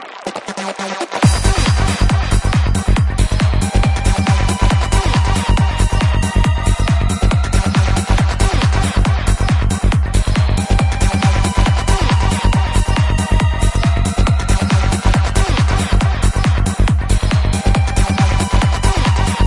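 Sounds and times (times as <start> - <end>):
progressive psytrance drum kit: 0.3 - 19.4.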